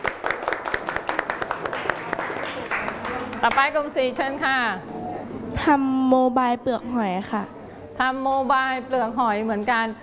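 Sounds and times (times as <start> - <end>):
group clapping hands: 0.0 - 4.3
speech: 3.4 - 10.0.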